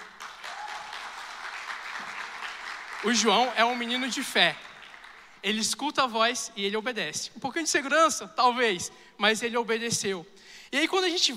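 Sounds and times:
crowd applauding: 0:00.0 - 0:05.4
speech: 0:03.0 - 0:04.6, 0:05.4 - 0:11.3.

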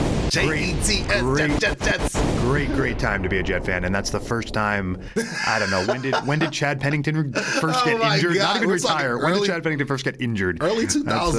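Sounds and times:
bomb explosion sound effect: 0:00.0 - 0:05.1
speech: 0:00.3 - 0:11.3
laughter: 0:05.1 - 0:09.4.

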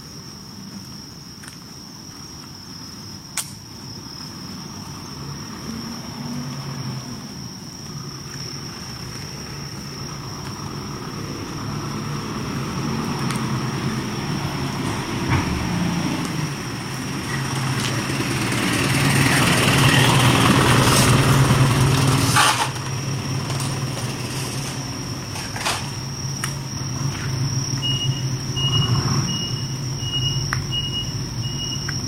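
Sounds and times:
high insect whine on a summer night: 0:00.0 - 0:32.0
low engine rumble: 0:00.0 - 0:32.0.

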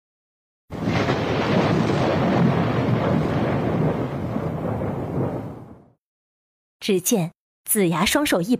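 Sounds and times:
thunder crash: 0:00.7 - 0:06.0
speech: 0:06.8 - 0:08.5.

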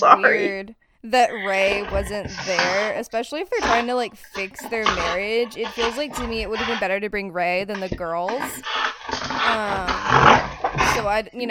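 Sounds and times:
speech: 0:00.0 - 0:11.4
dog growling while being play-wrestled: 0:01.2 - 0:06.8, 0:07.7 - 0:11.2.

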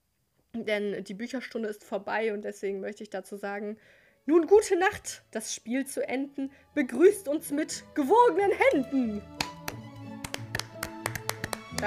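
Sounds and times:
speech: 0:00.6 - 0:09.5
hands clapping: 0:08.7 - 0:11.8.

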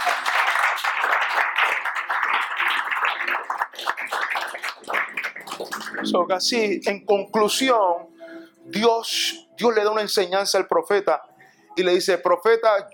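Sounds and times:
audience applause: 0:00.0 - 0:06.1
speech: 0:06.2 - 0:08.0, 0:08.8 - 0:12.9.

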